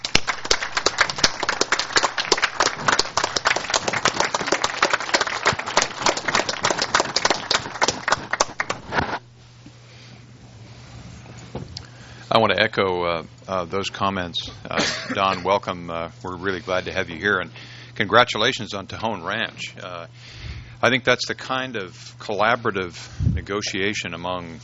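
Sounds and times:
audience round of applause: 0.0s - 9.0s
speech: 12.4s - 24.6s.

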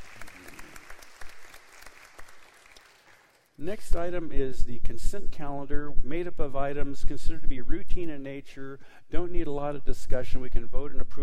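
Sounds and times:
audience applause: 0.0s - 3.6s
speech: 3.6s - 11.2s.

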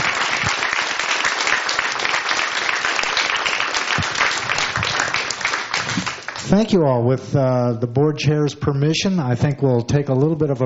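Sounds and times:
audience applause: 0.0s - 6.6s
speech: 6.5s - 10.6s.

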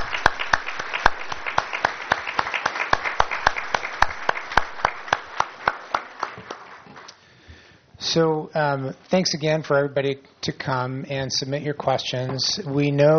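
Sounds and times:
audience applause: 0.0s - 7.2s
speech: 8.1s - 13.1s.

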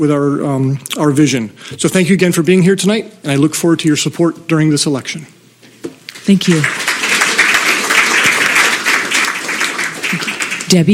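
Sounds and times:
speech: 0.0s - 6.8s, 10.1s - 10.9s
audience applause: 6.3s - 10.9s.

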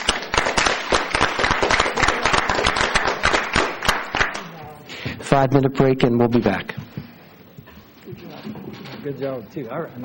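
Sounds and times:
audience applause: 0.0s - 4.5s
speech: 5.3s - 6.8s, 9.0s - 10.0s.

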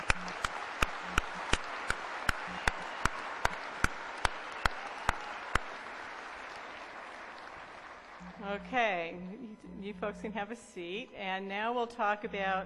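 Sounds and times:
audience applauding graduates: 0.0s - 9.2s
speech: 8.7s - 12.6s.

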